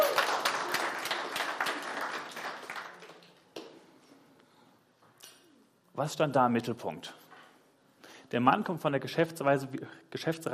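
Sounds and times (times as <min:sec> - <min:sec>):
audience applause: 0:00.0 - 0:03.5
speech: 0:06.0 - 0:07.2, 0:08.3 - 0:10.5.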